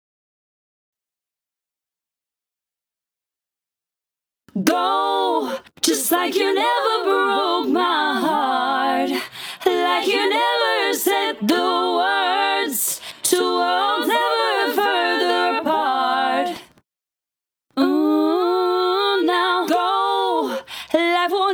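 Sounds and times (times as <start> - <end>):
vocals: 4.5 - 16.8, 17.7 - 21.5.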